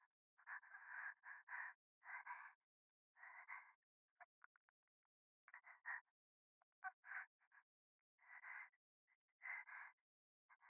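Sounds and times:
breathing in the right ear: 0:00.6 - 0:03.8, 0:08.2 - 0:08.8, 0:09.4 - 0:10.6.

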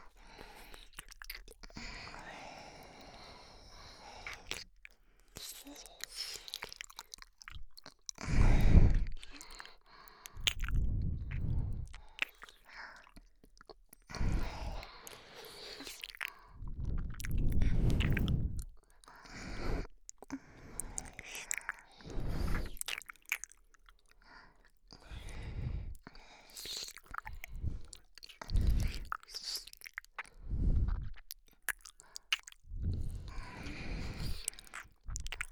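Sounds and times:
ASMR ear licking: 0:05.4 - 0:23.9, 0:26.6 - 0:35.5.

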